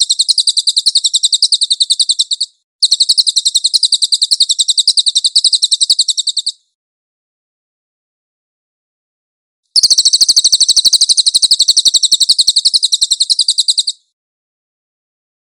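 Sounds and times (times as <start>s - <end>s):
cililin chattering trills: 0.0s - 6.6s, 9.8s - 14.0s.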